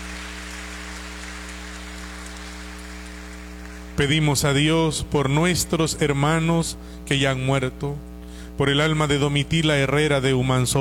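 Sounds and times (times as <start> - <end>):
audience applause: 0.0 - 4.0
low constant electrical hum: 0.0 - 10.7
speech: 4.0 - 10.7.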